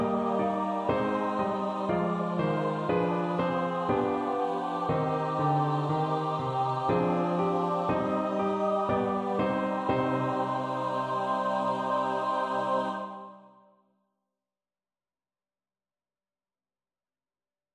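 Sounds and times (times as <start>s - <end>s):
choir singing: 0.0s - 13.7s.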